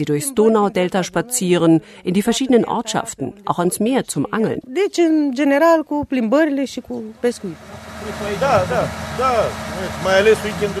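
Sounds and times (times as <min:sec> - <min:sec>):
speech: 0:00.0 - 0:10.7
motorboat engine running: 0:07.1 - 0:10.7.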